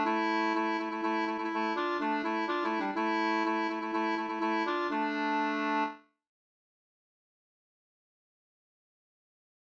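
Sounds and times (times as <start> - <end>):
two-part polska: 0.0 - 6.0.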